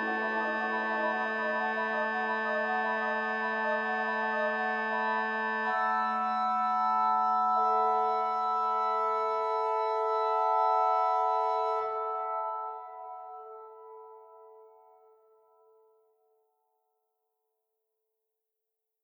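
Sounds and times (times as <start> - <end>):
organ flute and clairon stops: 0.0 - 14.1.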